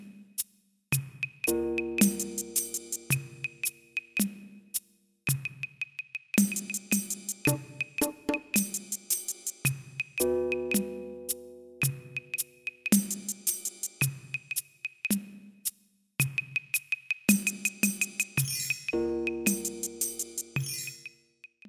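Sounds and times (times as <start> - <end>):
drum: 1.0 - 4.5, 6.4 - 11.3, 11.8 - 14.6, 16.2 - 20.9.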